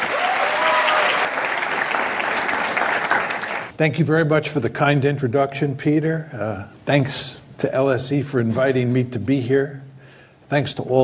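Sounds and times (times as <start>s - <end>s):
audience applause at the LSE welcoming Professor John Mearsheimer: 0.0s - 3.7s
speech: 3.8s - 9.8s, 10.5s - 11.0s.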